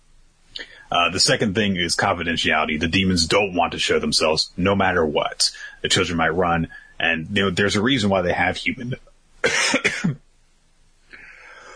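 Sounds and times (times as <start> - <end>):
speech: 1.0 - 10.2
coughing and throat clearing with something caught in the throat: 9.4 - 10.2.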